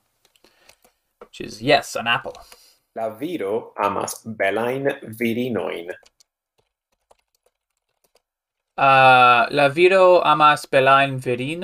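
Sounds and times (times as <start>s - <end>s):
speech: 1.4s - 6.1s, 8.8s - 11.6s
faint typing on a computer keyboard: 6.0s - 8.8s.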